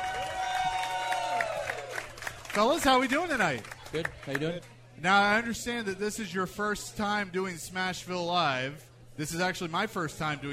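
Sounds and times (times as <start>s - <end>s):
round of applause from live audience: 0.0s - 4.6s
speech: 2.6s - 10.5s.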